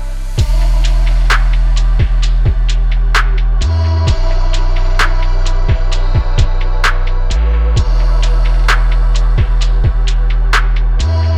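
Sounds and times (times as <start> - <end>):
cloud trap and late night beats: 0.2 - 11.3.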